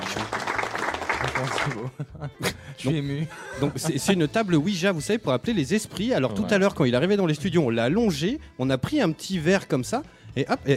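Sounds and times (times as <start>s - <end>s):
applause sound effect: 0.0s - 1.9s
laughter: 1.0s - 4.7s
speech: 1.4s - 10.7s.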